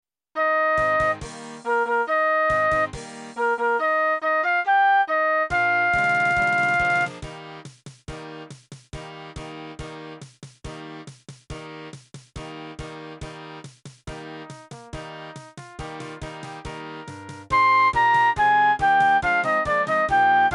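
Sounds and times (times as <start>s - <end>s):
flute: 0.4s - 7.2s, 16.2s - 20.5s.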